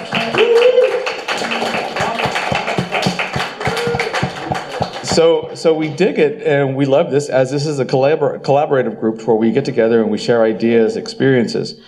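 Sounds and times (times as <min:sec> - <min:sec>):
group clapping: 0:00.0 - 0:05.4
speech: 0:05.2 - 0:11.8.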